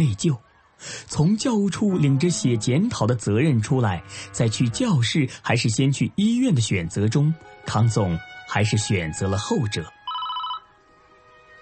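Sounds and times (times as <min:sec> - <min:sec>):
speech: 0:00.0 - 0:10.0
phone ringing with a bright electronic tone: 0:10.0 - 0:10.7.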